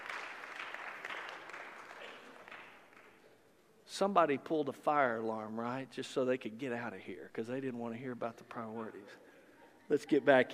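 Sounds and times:
audience applause: 0.0 - 3.2
speech: 4.0 - 9.2, 9.9 - 10.5.

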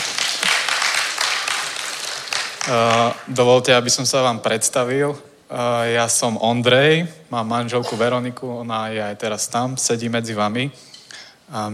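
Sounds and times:
audience applause: 0.0 - 3.3
speech: 2.7 - 10.9, 11.5 - 11.7.

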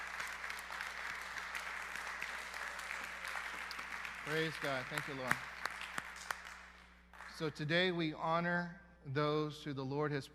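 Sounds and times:
audience clapping hands: 0.0 - 8.0
speech: 4.3 - 5.6, 7.4 - 10.3.

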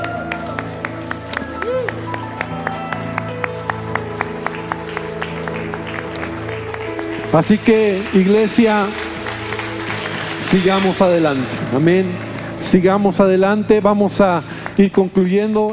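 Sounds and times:
musical drone: 0.0 - 14.8
audience applause: 0.0 - 15.7
speech: 7.3 - 9.0, 10.5 - 15.7.

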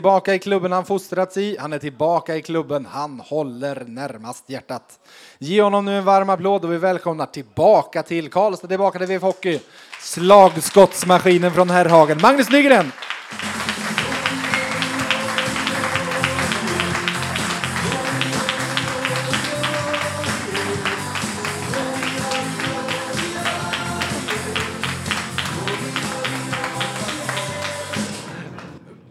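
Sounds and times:
speech: 0.0 - 13.6
hockey team's locker-room victory song: 10.3 - 28.3.

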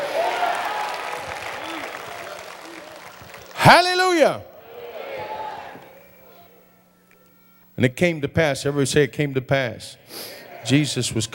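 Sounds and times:
audience clapping hands: 0.0 - 4.2
speech: 3.6 - 4.5, 7.8 - 11.3.

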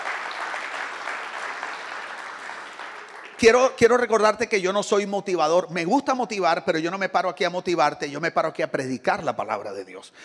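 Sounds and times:
audience applause: 0.0 - 3.6
speech: 3.4 - 10.2.

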